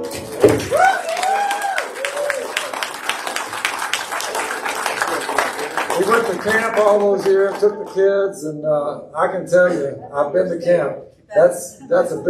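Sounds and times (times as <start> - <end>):
audience applause: 0.4 - 8.2
voices cheering and whooping: 0.7 - 2.9
speech: 6.4 - 12.2.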